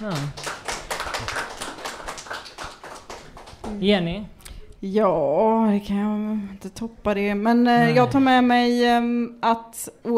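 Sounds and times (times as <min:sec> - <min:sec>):
speech: 0:00.0 - 0:00.5, 0:03.7 - 0:10.1
applause: 0:00.0 - 0:03.8.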